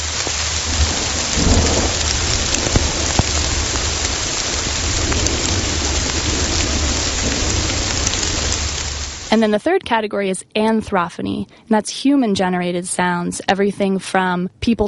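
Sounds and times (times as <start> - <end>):
thunder: 0.0 - 9.3
rainstorm: 0.0 - 9.5
speech: 9.3 - 14.8.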